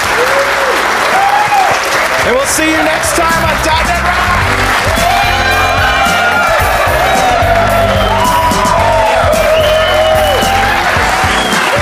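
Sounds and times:
crowd applause: 0.0s - 11.7s
speech: 2.3s - 4.3s
faint whistle-like tone: 7.7s - 8.7s, 9.3s - 10.6s, 11.2s - 11.7s.

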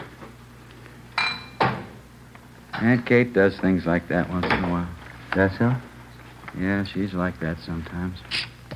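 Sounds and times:
dishes clattering: 1.2s - 1.8s
speech: 2.8s - 5.9s, 6.6s - 8.5s.

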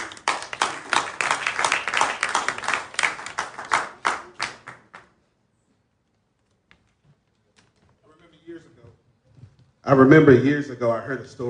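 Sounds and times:
audience applause: 0.0s - 5.1s
speech: 9.9s - 11.4s.

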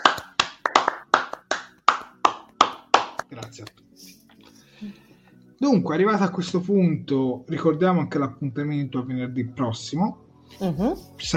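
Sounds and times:
hand clapping applause: 0.0s - 3.8s
speech: 3.6s - 3.8s, 5.6s - 11.3s.

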